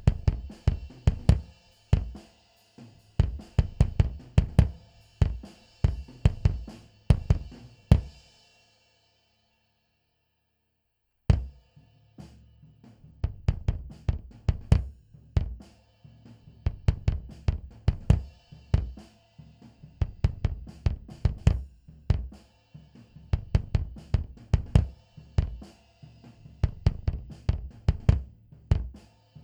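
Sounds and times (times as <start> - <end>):
bass drum: 0.0 - 2.3, 2.9 - 8.2, 11.3 - 11.6, 12.2 - 29.1.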